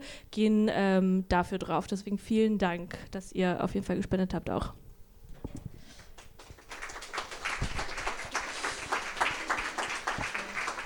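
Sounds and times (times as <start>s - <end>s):
speech: 0.3s - 4.8s
live audience applause: 6.2s - 10.8s.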